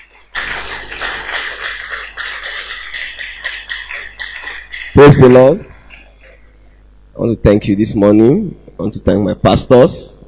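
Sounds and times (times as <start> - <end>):
audience clapping: 0.0 - 6.4
speech: 5.0 - 5.7, 7.2 - 10.1.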